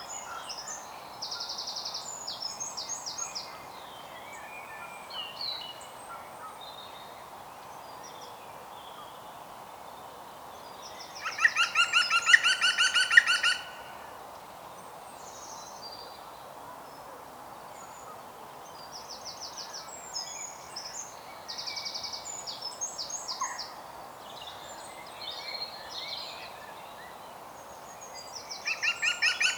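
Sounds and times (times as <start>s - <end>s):
European green woodpecker Picus viridis laughing calls: 11.2s - 13.8s, 28.7s - 29.5s.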